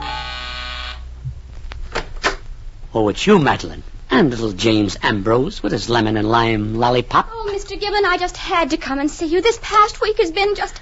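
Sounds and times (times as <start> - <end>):
gentle door buzzer: 0.0 - 1.1
speech: 2.9 - 10.8.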